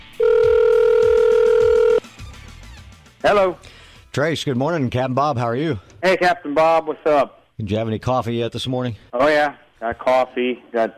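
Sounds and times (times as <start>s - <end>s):
telephone ringing: 0.2s - 2.0s
speech: 3.2s - 10.9s.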